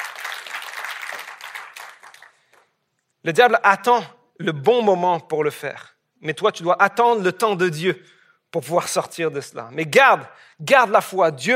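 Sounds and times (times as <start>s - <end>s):
crowd applause: 0.0s - 2.6s
speech: 3.2s - 11.5s.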